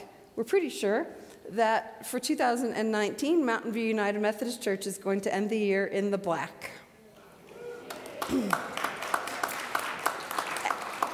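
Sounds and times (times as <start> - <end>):
speech: 0.4 - 6.8, 8.3 - 8.8
audience applauding: 7.7 - 11.1.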